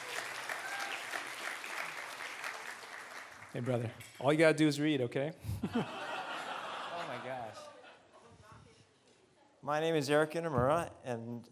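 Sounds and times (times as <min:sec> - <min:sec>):
audience applause welcoming a speaker onto the stage: 0:00.0 - 0:03.9
speech: 0:03.6 - 0:06.1, 0:09.6 - 0:11.4
laughter: 0:05.5 - 0:08.4.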